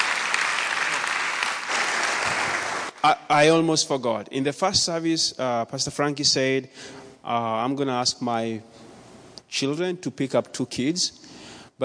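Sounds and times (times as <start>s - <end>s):
audience applause: 0.0s - 3.0s
speech: 3.0s - 8.9s, 9.5s - 11.8s.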